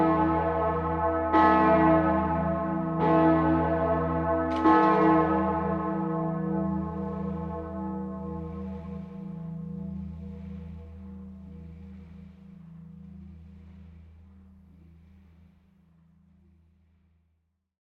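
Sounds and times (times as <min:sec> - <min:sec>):
Herz Jesu bell of the Jesuit church in Innsbruck ringing: 0:00.0 - 0:08.8.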